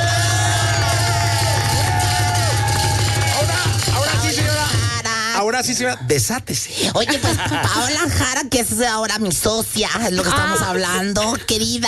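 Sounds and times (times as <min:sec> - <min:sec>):
live crowd applause: 0:00.0 - 0:05.0
speech: 0:05.6 - 0:11.8
laughter: 0:06.8 - 0:08.3.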